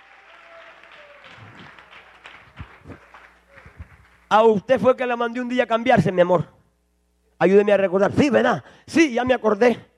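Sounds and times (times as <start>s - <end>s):
audience clapping: 0.0s - 4.4s
speech: 4.3s - 6.6s, 7.4s - 9.9s.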